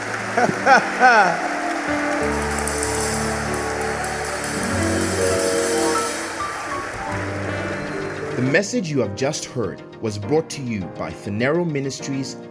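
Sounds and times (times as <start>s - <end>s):
hand clapping: 0.0s - 8.6s
speech: 0.4s - 2.4s, 8.4s - 12.4s.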